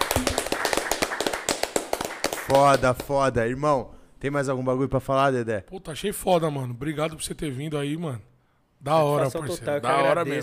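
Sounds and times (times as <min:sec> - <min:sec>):
a few people clapping hands: 0:00.0 - 0:03.4
speech: 0:02.5 - 0:10.4.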